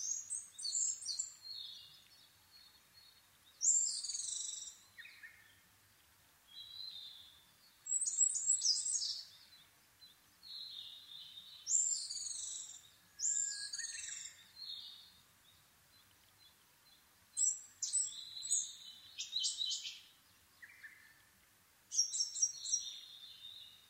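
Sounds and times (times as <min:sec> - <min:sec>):
Asian brown flycatcher Muscicapa dauurica singing at dawn: 0:00.0 - 0:05.4, 0:07.9 - 0:09.6, 0:10.4 - 0:15.1, 0:16.8 - 0:21.0, 0:21.9 - 0:23.8.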